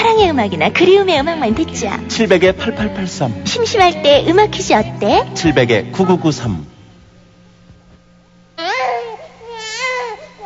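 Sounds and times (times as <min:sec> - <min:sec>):
speech: 0:00.4 - 0:06.7
newborn baby crying: 0:08.6 - 0:10.4.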